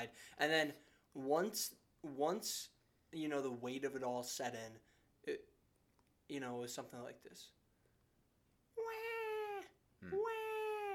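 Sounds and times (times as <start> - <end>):
speech: 0.0 - 5.5, 6.3 - 7.6, 10.0 - 10.4
voice imitating hysterical newborn-like wailing: 8.8 - 10.9.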